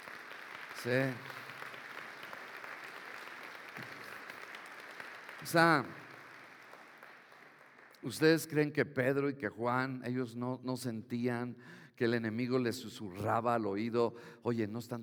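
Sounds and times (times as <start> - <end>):
audience applause: 0.0 - 8.1
speech: 0.8 - 1.4, 5.4 - 6.0, 8.0 - 15.0.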